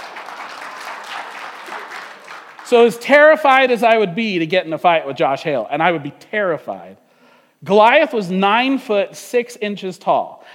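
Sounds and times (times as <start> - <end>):
audience applause: 0.0 - 2.8
speech: 2.7 - 7.0, 7.6 - 10.5.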